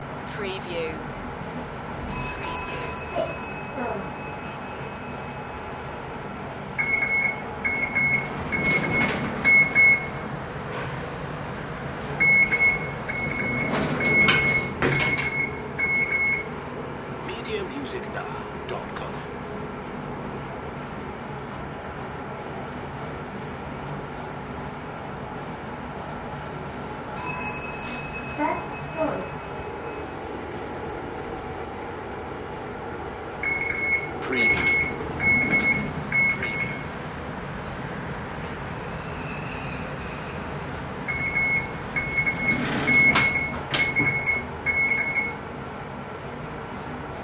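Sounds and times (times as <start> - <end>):
elevator ride: 0.0 - 47.2.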